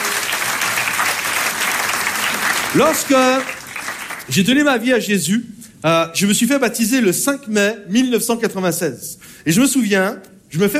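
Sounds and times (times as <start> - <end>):
audience applauding loudly: 0.0 - 4.6
speech: 2.7 - 3.6, 4.3 - 10.7.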